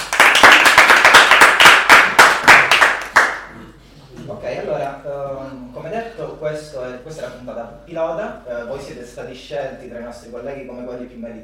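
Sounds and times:
audience applause: 0.0s - 3.4s
speech: 7.4s - 11.4s.

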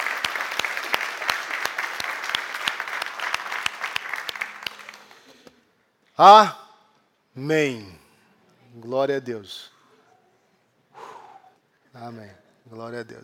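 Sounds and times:
crowd applause: 0.0s - 5.4s
speech: 6.2s - 6.6s, 7.4s - 8.0s, 8.8s - 9.7s, 12.0s - 13.2s.

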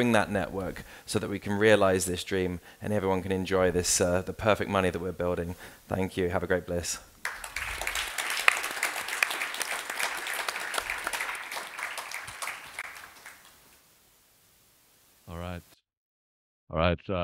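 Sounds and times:
speech: 0.0s - 7.4s, 16.7s - 17.2s
audience applause: 7.2s - 13.7s.

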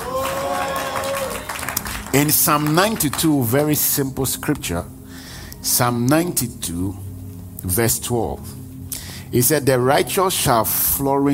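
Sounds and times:
audience shouting: 0.0s - 1.6s
audience clapping hands: 0.0s - 3.8s
speech: 2.1s - 5.0s, 5.6s - 7.0s, 7.6s - 8.6s, 9.3s - 11.3s.

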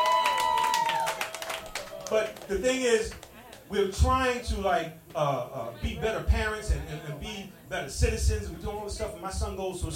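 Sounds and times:
audience clapping: 0.0s - 3.7s
speech: 2.1s - 9.9s.

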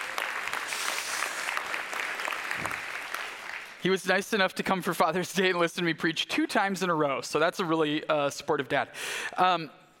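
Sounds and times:
audience cheering and applauding: 0.0s - 3.8s
speech: 3.8s - 9.8s.

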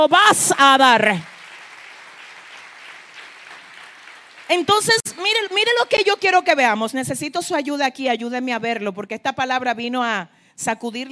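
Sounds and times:
speech: 0.0s - 1.3s, 4.5s - 11.1s
applause: 0.0s - 6.3s.

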